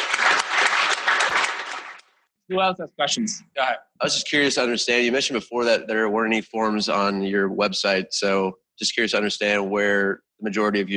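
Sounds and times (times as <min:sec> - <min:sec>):
audience round of applause: 0:00.0 - 0:02.0
speech: 0:02.5 - 0:10.9.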